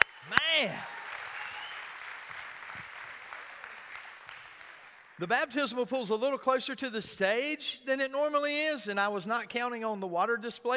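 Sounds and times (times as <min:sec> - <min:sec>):
crowd clapping: 0:00.0 - 0:05.2
speech: 0:00.6 - 0:00.9, 0:05.2 - 0:10.7.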